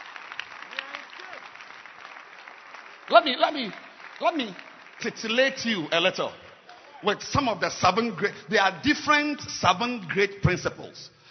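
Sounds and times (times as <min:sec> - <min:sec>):
audience clapping: 0:00.0 - 0:08.7
speech: 0:03.1 - 0:06.4, 0:07.0 - 0:11.2.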